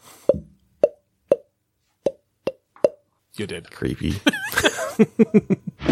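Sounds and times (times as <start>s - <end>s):
mouth blowing bubble popping sounds: 0.2s - 1.5s
speech: 3.4s - 5.6s
laughter: 4.2s - 5.8s.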